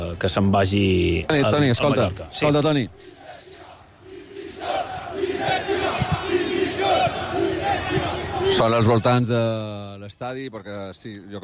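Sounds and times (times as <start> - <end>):
speech: 0.1 - 3.2, 8.5 - 11.4
football fans chanting and cheering outside the stadium: 2.5 - 8.9.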